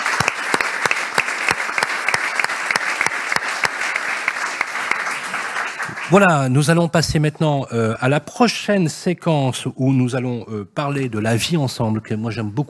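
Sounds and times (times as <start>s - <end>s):
rhythmic claps: 0.0s - 6.4s
audience applause: 0.0s - 6.6s
speech: 6.1s - 12.6s.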